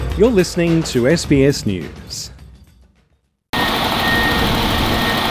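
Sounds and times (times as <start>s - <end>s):
speech: 0.2s - 2.3s
construction drills in action: 3.5s - 5.2s.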